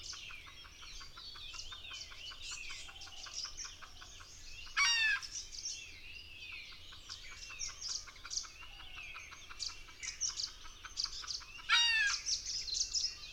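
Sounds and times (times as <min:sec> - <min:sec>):
red junglefowl: 0:00.7 - 0:05.3, 0:06.9 - 0:12.3.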